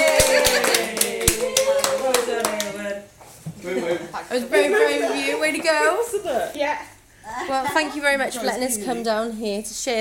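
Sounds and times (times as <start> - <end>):
audience applause: 0.0 - 3.0
speech: 4.3 - 9.9.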